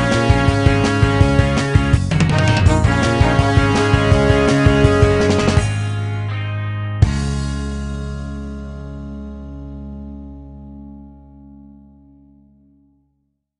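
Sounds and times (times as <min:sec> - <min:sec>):
ska arrangement: 0:00.0 - 0:07.9.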